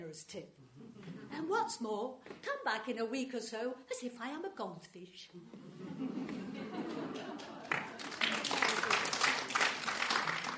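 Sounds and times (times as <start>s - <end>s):
speech: 0.1s - 6.2s, 7.0s - 7.7s
laughter: 0.7s - 1.4s, 5.4s - 9.5s
audience clapping: 6.3s - 10.5s.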